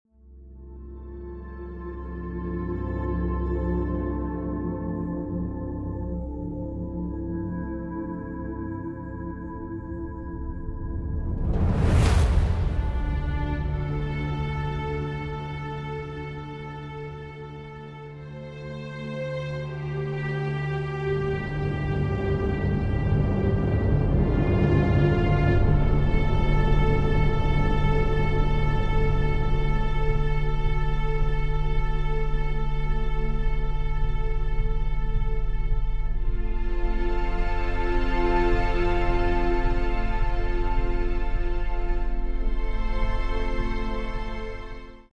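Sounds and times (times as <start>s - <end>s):
dark orchestral music: 0.4s - 45.1s.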